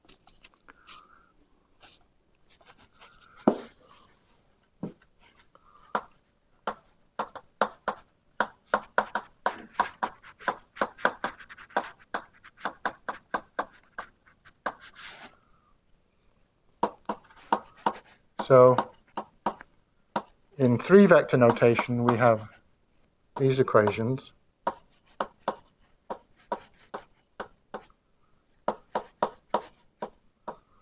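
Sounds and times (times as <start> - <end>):
writing taps and scratching strokes setting down Maxwell's equations: 4.8 - 15.0, 16.8 - 20.4, 21.0 - 22.6, 23.4 - 28.0, 28.6 - 30.6
speech: 18.5 - 18.9, 20.6 - 22.6, 23.4 - 24.4.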